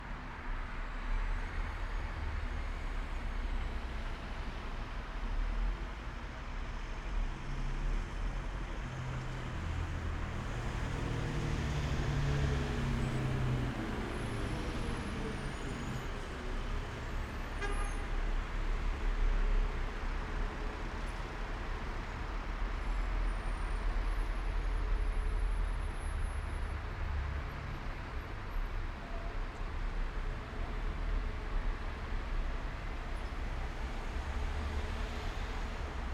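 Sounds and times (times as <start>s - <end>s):
night traffic on a main street heard from a balcony in Madrid: 0.0s - 36.1s.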